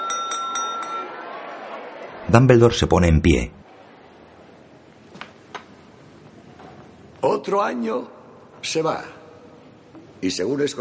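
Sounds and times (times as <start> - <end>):
teaspoon tapping a glass goblet in a school's great dining hall: 0.0 - 1.1
speech: 2.3 - 3.6, 7.4 - 9.2, 10.2 - 10.7.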